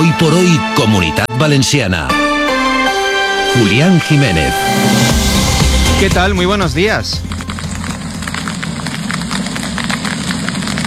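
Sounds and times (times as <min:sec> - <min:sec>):
speech: 0:00.2 - 0:02.3, 0:03.5 - 0:05.2, 0:06.0 - 0:07.3
low rumble: 0:04.6 - 0:10.8
golf-ball-sized hail pelting down in Casas Bajas: 0:06.0 - 0:10.8.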